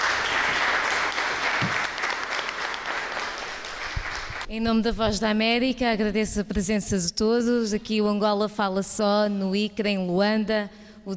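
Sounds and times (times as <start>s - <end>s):
applause: 0.0s - 4.5s
speech: 4.5s - 11.1s.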